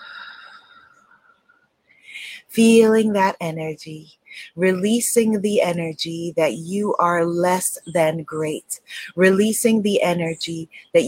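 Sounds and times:
person inhaling and exhaling during a guided manifesting meditation: 0.0s - 2.5s
speech: 2.6s - 11.0s.

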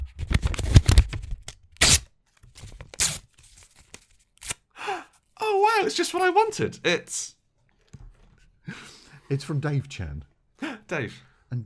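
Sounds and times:
paper tearing as a wrapped present is unwrapped: 0.4s - 4.6s
speech: 5.9s - 7.4s, 9.3s - 10.3s, 10.9s - 11.6s.

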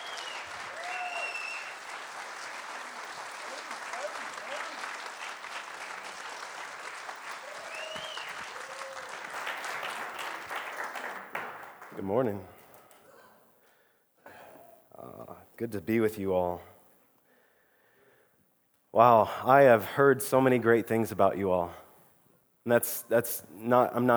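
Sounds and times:
cheers and whoops: 0.0s - 2.1s, 2.8s - 5.2s, 7.2s - 10.2s
church congregation applauding a guest speaker: 0.0s - 13.1s
speech: 12.0s - 12.6s, 15.6s - 16.7s, 19.0s - 21.8s, 22.6s - 24.1s.

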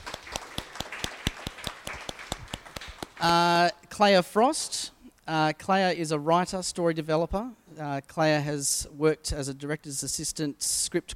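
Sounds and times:
audience applause: 0.0s - 3.3s
speech: 3.2s - 11.1s.

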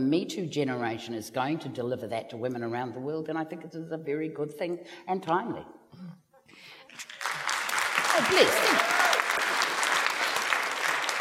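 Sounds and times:
speech: 0.0s - 7.2s, 8.2s - 9.0s
audience applause: 7.0s - 11.1s.

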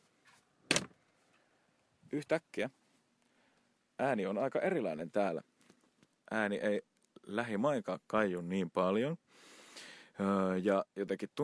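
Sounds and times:
faint rustle of movement: 0.0s - 3.8s, 5.0s - 6.3s
studio control room door shutting with latch click: 0.7s - 0.9s
speech: 2.1s - 2.8s, 4.0s - 5.5s, 6.3s - 11.4s.

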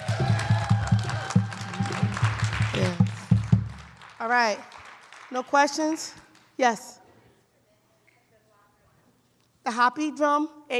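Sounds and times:
audience applause: 0.0s - 5.6s
speech: 4.2s - 7.0s, 9.7s - 10.7s.

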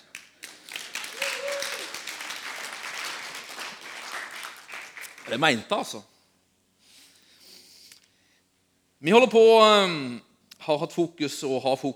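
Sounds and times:
crowd applauding: 0.0s - 5.7s
person cheering: 0.9s - 2.7s
speech: 5.3s - 6.1s, 9.0s - 11.9s.

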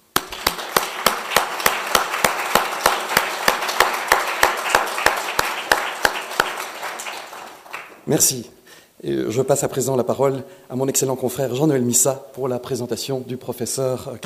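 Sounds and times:
audience applause: 0.0s - 8.0s
speech: 8.1s - 14.2s.

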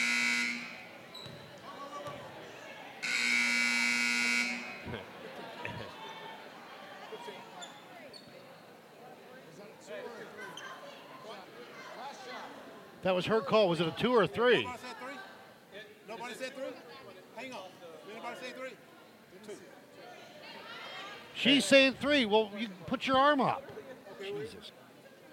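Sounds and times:
harsh loud electric buzzer: 0.0s - 0.8s, 3.0s - 4.8s
busy noise: 0.0s - 25.3s
speech: 13.0s - 14.8s, 18.3s - 19.8s, 21.4s - 24.8s.

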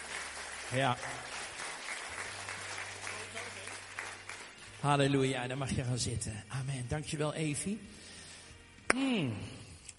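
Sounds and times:
audience applauding: 0.0s - 4.8s
speech: 0.7s - 1.3s, 4.8s - 8.1s, 8.9s - 9.9s.

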